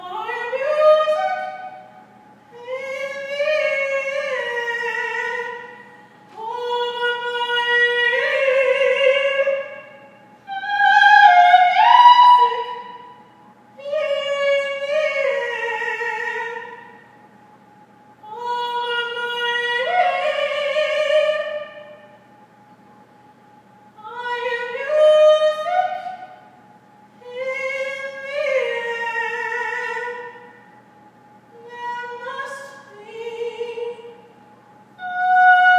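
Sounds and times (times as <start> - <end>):
person singing a simple spiritual a cappella: 0.0 - 1.9, 2.5 - 13.0, 13.8 - 16.9, 18.2 - 22.0, 24.0 - 26.3, 27.2 - 30.4, 31.5 - 34.2, 35.0 - 35.7.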